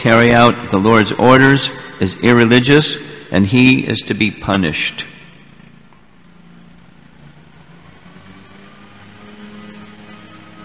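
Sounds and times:
speech: 0.0s - 5.1s
lawnmower engine droning: 0.0s - 10.6s.

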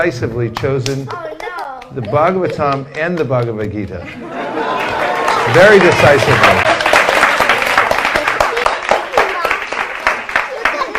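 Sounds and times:
speech: 0.0s - 4.8s, 5.5s - 6.7s
people clapping: 0.5s - 3.8s, 4.5s - 10.9s
laughter: 3.6s - 6.7s
people cheering: 4.4s - 10.9s.

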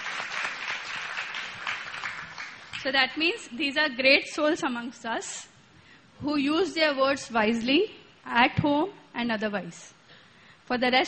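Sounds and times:
audience clapping: 0.0s - 2.9s
speech: 2.8s - 5.5s, 6.2s - 10.0s, 10.7s - 11.0s.

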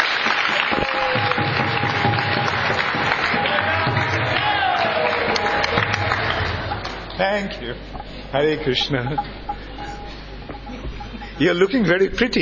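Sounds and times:
audience clapping: 0.0s - 7.8s
speech: 7.2s - 9.4s, 11.4s - 12.3s.

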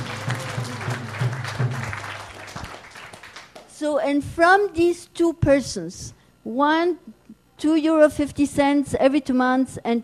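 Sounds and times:
crowd clapping steadily: 0.0s - 3.8s
speech: 3.8s - 10.0s.

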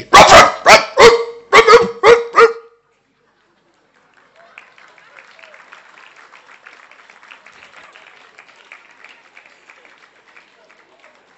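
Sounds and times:
man imitating a barking dog: 0.0s - 2.7s.

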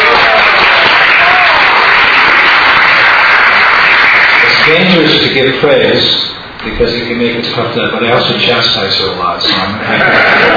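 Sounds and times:
audience applause: 0.0s - 5.5s, 10.0s - 10.5s
speech: 4.7s - 10.5s
laughter: 9.4s - 10.5s.

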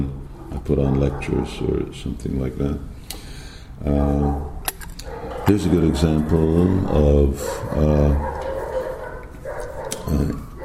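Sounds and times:
speech: 0.0s - 3.0s, 3.8s - 4.5s, 5.5s - 8.3s, 10.1s - 10.4s
dogs barking in Budapest: 0.3s - 1.9s, 4.1s - 10.6s.

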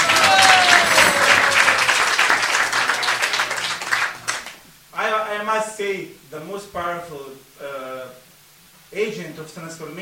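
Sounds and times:
audience applause: 0.0s - 4.6s
speech: 5.8s - 7.8s, 8.9s - 9.9s.

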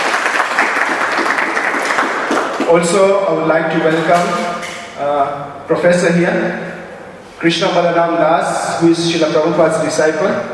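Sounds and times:
lecture audience applause welcoming a speaker: 0.0s - 2.7s
speech: 2.7s - 6.7s, 7.4s - 10.5s.

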